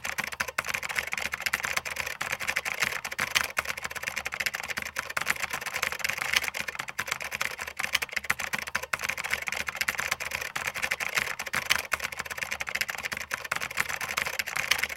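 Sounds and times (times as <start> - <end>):
computer keyboard typing: 0.0 - 14.9.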